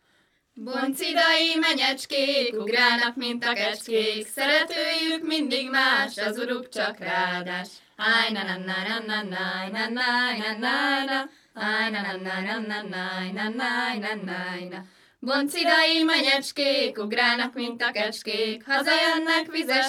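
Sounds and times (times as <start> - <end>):
Hungarian folk song: 0.0 - 19.8.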